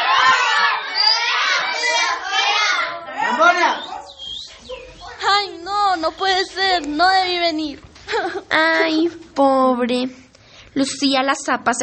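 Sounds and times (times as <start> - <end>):
schoolchildren jeering and laughing: 0.0 - 9.2
speech: 6.1 - 10.2, 10.8 - 11.8.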